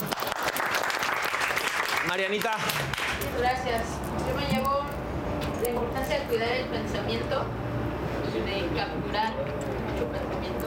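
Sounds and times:
applause: 0.0s - 3.2s
speech: 2.1s - 5.0s, 5.6s - 10.6s.

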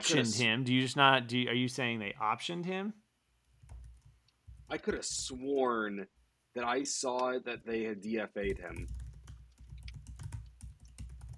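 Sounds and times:
speech: 0.0s - 3.0s, 4.7s - 9.0s
typing on a computer keyboard: 3.6s - 4.1s, 8.4s - 11.3s.

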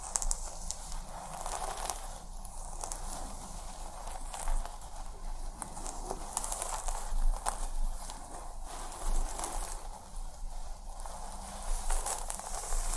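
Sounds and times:
fingers scratching scalp through hair during head massage: 0.0s - 12.9s.

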